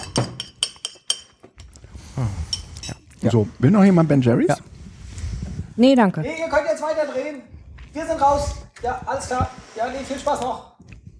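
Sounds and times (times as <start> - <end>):
plate and glass being set down: 0.0 - 3.2
speech: 2.2 - 2.5, 3.2 - 4.7, 5.8 - 10.7.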